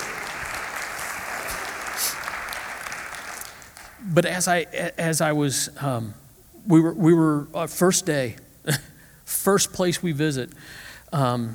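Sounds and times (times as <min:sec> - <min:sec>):
audience applause: 0:00.0 - 0:04.0
speech: 0:04.1 - 0:11.5.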